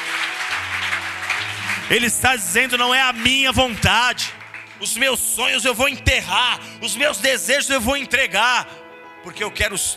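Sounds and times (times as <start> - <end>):
audience applause: 0.0 - 5.5
speech: 1.9 - 9.9.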